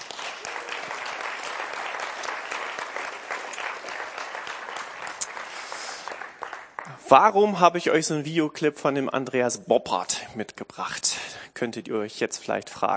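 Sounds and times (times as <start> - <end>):
audience clapping: 0.0 - 7.1
speech: 7.1 - 12.9.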